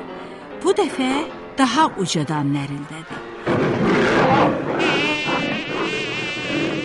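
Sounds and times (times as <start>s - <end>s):
speech: 0.8s - 4.9s
buzzing of an annoying fly: 4.8s - 6.8s.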